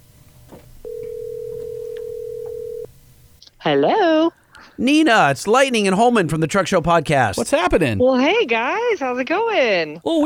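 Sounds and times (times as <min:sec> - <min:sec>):
low noise: 0:00.0 - 0:10.2
outgoing phone call ringback tone: 0:00.8 - 0:02.9
speech: 0:03.6 - 0:10.2.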